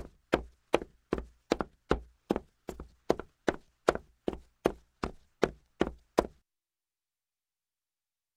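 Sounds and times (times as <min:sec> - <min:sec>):
slow footsteps in boots on wood: 0:00.0 - 0:06.4.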